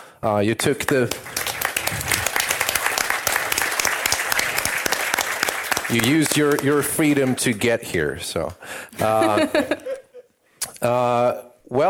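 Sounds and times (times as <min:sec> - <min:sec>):
speech: 0:00.2 - 0:02.2, 0:05.9 - 0:09.8, 0:10.8 - 0:11.8
audience applause: 0:00.8 - 0:07.6
laughter: 0:08.9 - 0:10.3.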